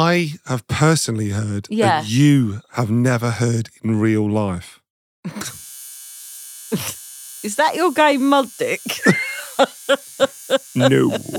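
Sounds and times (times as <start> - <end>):
speech: 0.0 - 5.6, 6.7 - 11.3
laughter: 1.8 - 3.5, 8.9 - 11.3
tattoo gun buzzing: 5.4 - 11.3.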